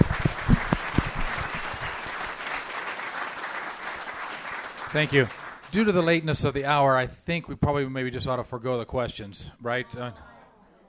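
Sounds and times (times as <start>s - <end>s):
audience applause: 0.0s - 6.2s
speech: 4.9s - 10.3s.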